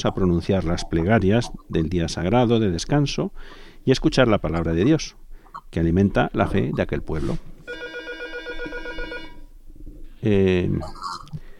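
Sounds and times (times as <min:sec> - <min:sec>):
speech: 0:00.0 - 0:08.0, 0:10.2 - 0:11.4
doorbell ringing: 0:07.7 - 0:09.4.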